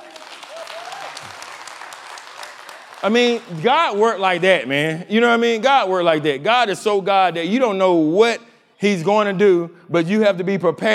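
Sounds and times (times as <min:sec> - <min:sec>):
crowd applause: 0:00.0 - 0:04.5
speech: 0:03.0 - 0:10.9.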